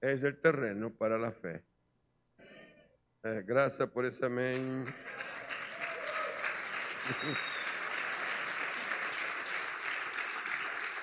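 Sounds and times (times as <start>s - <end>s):
speech: 0.0s - 1.7s, 3.2s - 5.3s, 7.1s - 7.5s
audience applauding: 4.5s - 11.0s.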